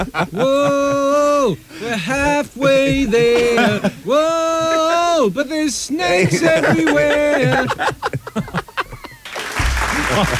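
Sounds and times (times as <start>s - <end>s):
laughter: 0.0s - 5.3s, 5.9s - 10.3s
speech: 0.0s - 8.6s, 10.1s - 10.3s
studio audience applause: 9.0s - 10.3s.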